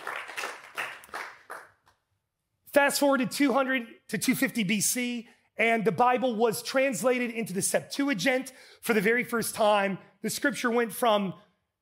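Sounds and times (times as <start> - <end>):
golf clap from a few audience members: 0.0 - 2.0
speech: 2.8 - 11.4.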